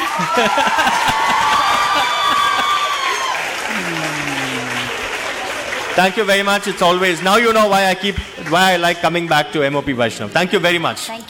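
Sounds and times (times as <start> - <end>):
laughter: 0.0 - 9.7
audience applause: 0.0 - 9.9
speech: 0.2 - 1.5, 6.0 - 11.2.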